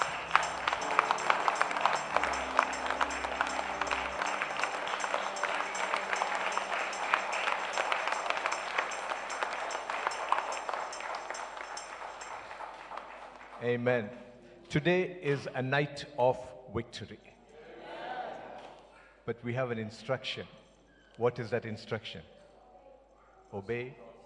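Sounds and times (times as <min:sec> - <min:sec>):
audience clapping: 0:00.0 - 0:13.8
speech: 0:13.7 - 0:17.3, 0:19.3 - 0:20.6, 0:21.2 - 0:22.4, 0:23.5 - 0:24.0.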